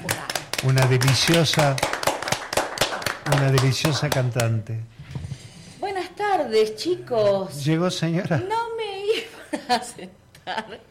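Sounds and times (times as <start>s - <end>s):
applause: 0.0s - 4.6s
speech: 0.6s - 2.0s, 3.3s - 5.0s, 6.2s - 8.6s, 9.7s - 10.8s.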